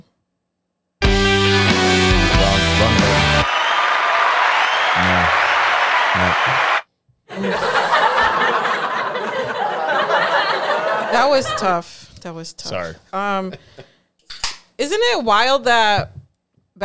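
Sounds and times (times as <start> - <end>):
live TV studio audience cheering: 1.7 - 11.8
live TV studio audience applause: 2.4 - 11.4
live TV studio audience laughter: 4.0 - 11.9
speech: 11.4 - 13.8, 14.8 - 16.2.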